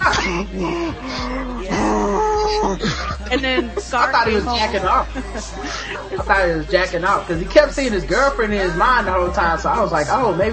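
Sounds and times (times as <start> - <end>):
voice imitating heavy labored breathing: 0.0 - 7.6
laughter: 0.0 - 10.5
speech: 0.3 - 1.9, 2.5 - 10.5.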